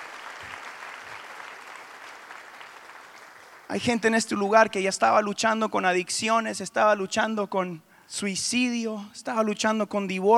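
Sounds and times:
audience applause: 0.0 - 3.7
speech: 3.7 - 10.3.

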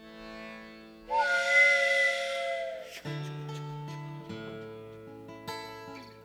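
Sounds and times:
plucked string music: 0.0 - 5.9
freight train whistle blast: 1.0 - 3.6.

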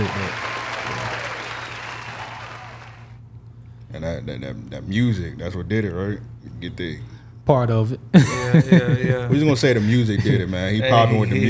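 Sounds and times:
laughter: 0.0 - 3.0, 8.1 - 11.4
applause: 0.0 - 3.2
speech: 4.0 - 11.4.

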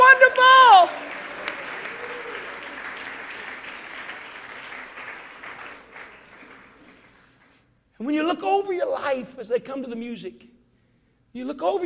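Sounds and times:
people clapping hands: 0.0 - 7.6
speech: 8.0 - 10.5, 11.4 - 11.8.

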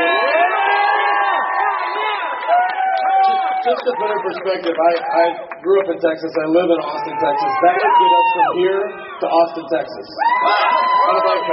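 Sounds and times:
crowd applause and cheering: 0.0 - 11.5
speech: 3.7 - 11.5.

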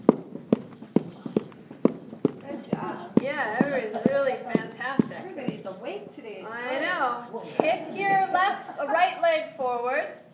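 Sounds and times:
feet stomping on the floor: 0.0 - 5.8
speech: 3.4 - 10.2.

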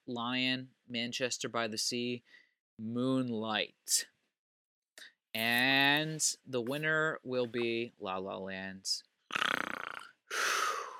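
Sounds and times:
speech: 0.1 - 4.1, 5.0 - 9.6
person imitating a snore: 9.3 - 10.9.

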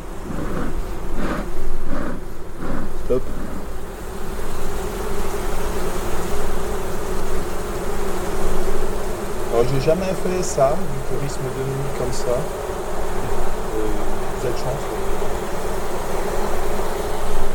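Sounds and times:
many insects buzzing: 0.0 - 17.5
speech: 9.8 - 12.7, 14.5 - 15.3.

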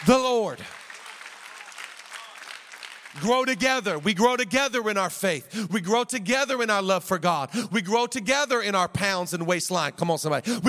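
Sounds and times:
speech: 0.0 - 0.8, 3.2 - 10.6
audience clapping: 0.0 - 4.8.

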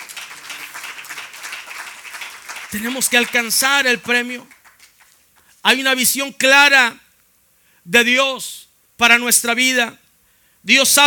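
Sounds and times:
audience applauding: 0.0 - 5.4
speech: 2.7 - 4.6, 5.6 - 7.0, 7.9 - 10.0, 10.6 - 11.0.

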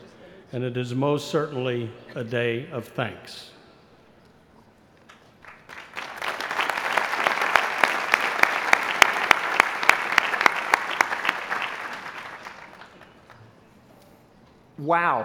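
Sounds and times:
speech: 0.5 - 3.6, 14.8 - 15.2
audience applause: 5.1 - 13.4.

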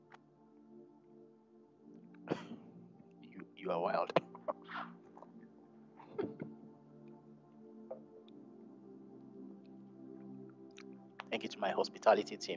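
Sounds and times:
coughing: 2.3 - 2.6, 4.1 - 5.0, 6.0 - 6.5
speech: 3.6 - 5.0, 11.4 - 12.5.

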